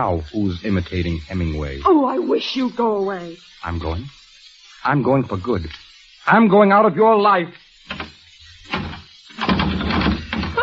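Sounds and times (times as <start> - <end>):
speech: 0.0 - 4.2, 4.8 - 8.0
bolted door rattling against the frame: 7.9 - 10.6.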